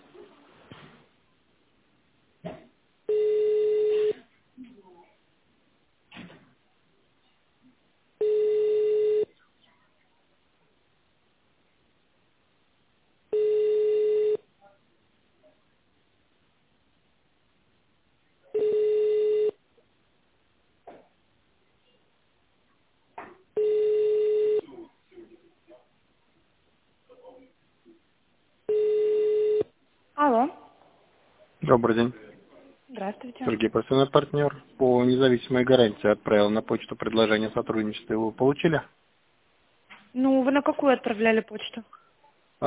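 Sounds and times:
telephone ringback tone while waiting on hold: 3.1s - 4.2s, 8.2s - 9.3s, 13.3s - 14.4s, 18.6s - 19.6s, 23.6s - 24.6s, 28.7s - 29.7s
speech: 31.7s - 39.0s, 40.2s - 42.0s.

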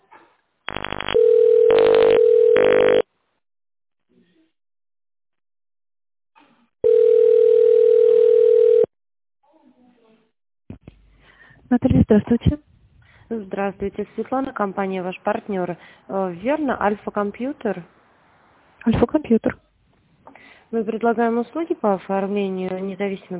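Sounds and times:
telephone ringback tone: 0.7s - 3.0s, 6.8s - 8.9s
speech: 12.1s - 12.5s, 13.6s - 18.0s, 18.8s - 19.6s, 20.7s - 23.3s.

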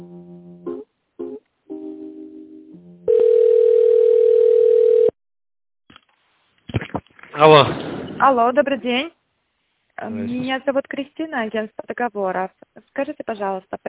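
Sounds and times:
telephone beeps while a call is being transferred: 3.1s - 5.1s
speech: 7.4s - 9.2s, 10.0s - 13.8s.

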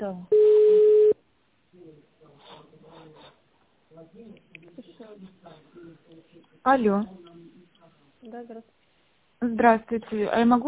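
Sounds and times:
speech: 0.0s - 0.5s, 3.9s - 7.5s, 8.2s - 8.8s, 9.4s - 10.6s
telephone line tone as a call is connected: 0.3s - 1.2s.

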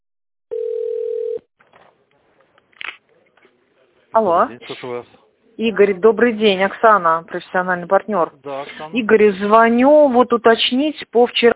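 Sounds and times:
telephone line beep: 0.5s - 1.4s
speech: 4.2s - 11.5s.

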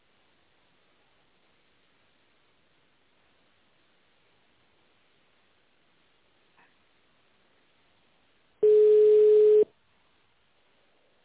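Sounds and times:
telephone line tone while a call is being transferred: 8.6s - 9.7s.

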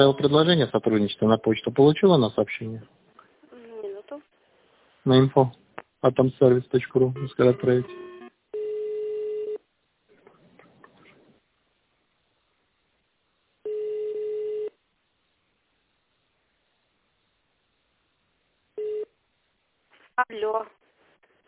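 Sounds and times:
speech: 0.0s - 3.1s, 5.0s - 8.0s
telephone ringing unanswered: 7.2s - 9.6s, 13.6s - 14.7s, 18.8s - 19.1s.

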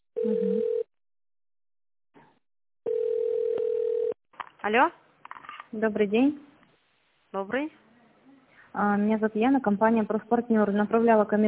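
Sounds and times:
telephone ringback tone during call transfer: 0.2s - 0.9s, 2.9s - 4.2s
speech: 4.6s - 5.0s, 5.7s - 6.5s, 7.3s - 7.8s, 8.7s - 11.4s.

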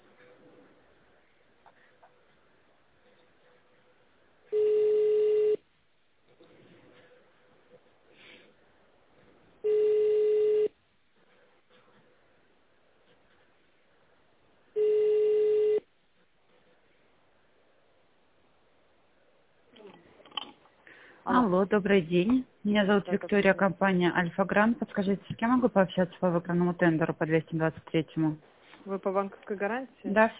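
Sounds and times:
telephone ringback tones: 4.5s - 5.6s, 9.6s - 10.7s, 14.8s - 15.9s
speech: 21.3s - 30.3s.

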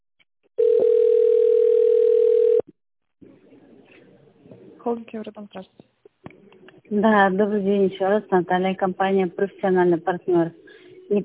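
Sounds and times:
telephone ringback tone: 0.6s - 2.6s
speech: 4.9s - 5.9s, 6.9s - 11.2s.

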